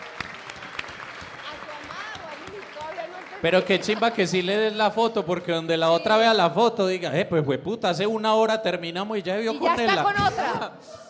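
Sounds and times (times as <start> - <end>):
audience applause: 0.0 - 5.1
speech: 3.4 - 11.0.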